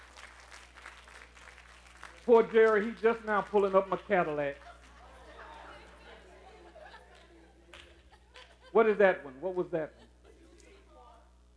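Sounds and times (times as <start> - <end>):
audience applauding: 0.0 - 6.0
speech: 2.3 - 4.6, 8.8 - 10.0
laughter: 4.3 - 11.1.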